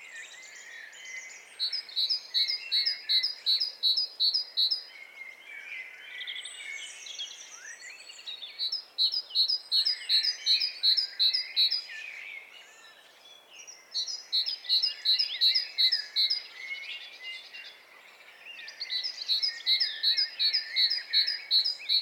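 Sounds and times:
great tit singing: 0.0 - 5.3, 6.2 - 21.9
bird chorus twittering: 0.0 - 21.9.

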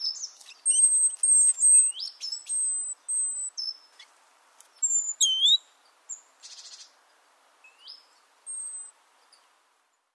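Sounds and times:
great tit whistles and ticking calls: 0.0 - 4.1, 4.8 - 5.6.

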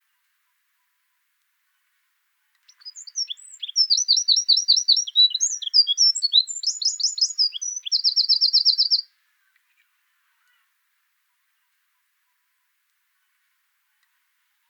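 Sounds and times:
Eurasian wren singing: 2.7 - 9.0.

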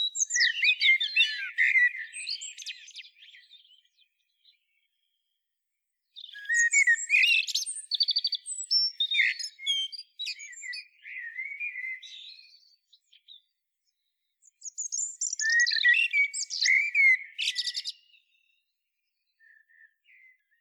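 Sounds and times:
common blackbird singing: 0.0 - 4.9, 6.2 - 13.5, 14.4 - 18.6.

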